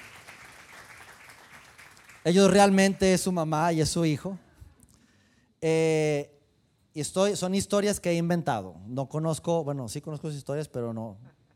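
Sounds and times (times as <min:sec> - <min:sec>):
crowd applauding: 0:00.0 - 0:02.8
speech: 0:02.2 - 0:04.4, 0:05.6 - 0:06.4, 0:07.0 - 0:11.4.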